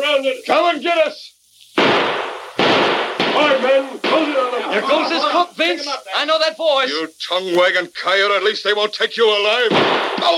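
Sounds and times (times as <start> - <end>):
speech: 0.2 - 2.2, 5.0 - 10.3
gunfire: 1.8 - 4.8, 9.7 - 10.3
laughter: 4.2 - 6.1.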